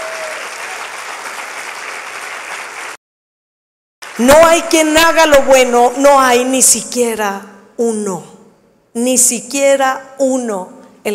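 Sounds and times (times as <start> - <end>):
loud applause: 0.0 - 3.0
speech: 4.2 - 8.3, 9.0 - 11.1.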